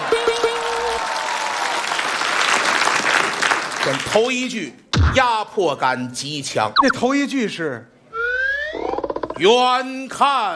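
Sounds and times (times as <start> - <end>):
audience applause: 0.0 - 4.0
speech: 3.9 - 8.0, 9.4 - 10.5.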